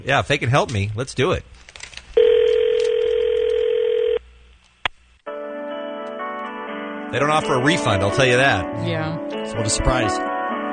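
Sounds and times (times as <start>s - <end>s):
speech: 0.0s - 1.6s, 7.1s - 10.3s
telephone dial tone: 2.2s - 4.2s.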